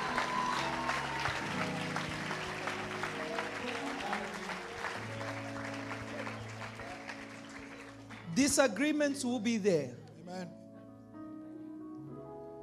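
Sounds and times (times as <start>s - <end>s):
audience clapping: 0.0s - 8.9s
speech: 8.4s - 10.6s.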